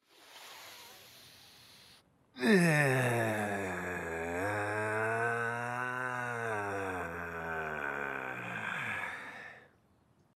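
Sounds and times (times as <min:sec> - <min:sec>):
person sighing: 0:02.4 - 0:09.7.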